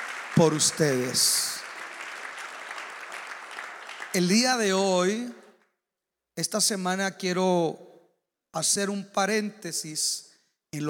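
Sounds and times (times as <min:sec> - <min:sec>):
applause: 0:00.0 - 0:05.5
speech: 0:00.4 - 0:01.6, 0:04.2 - 0:05.4, 0:06.4 - 0:07.9, 0:08.5 - 0:10.8.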